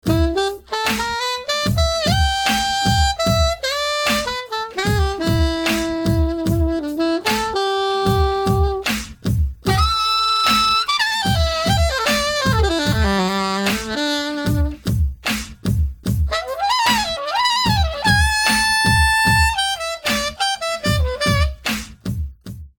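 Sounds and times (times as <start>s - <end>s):
saxophone: 0.0s - 15.2s, 16.2s - 21.8s.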